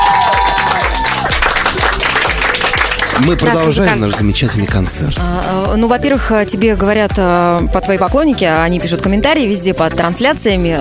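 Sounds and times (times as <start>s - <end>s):
audience applause: 0.0s - 4.7s
speech: 3.2s - 10.7s.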